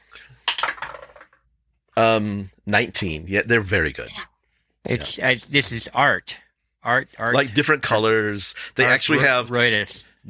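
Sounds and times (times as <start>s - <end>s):
dice clattering across a surface for a tabletop role-playing game check: 0.4s - 1.4s
speech: 2.0s - 4.3s, 4.9s - 10.2s.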